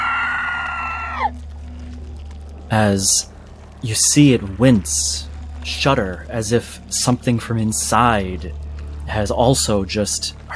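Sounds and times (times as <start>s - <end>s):
creature screeching: 0.0s - 1.3s
steady low hum: 0.0s - 10.5s
speech: 2.7s - 10.5s.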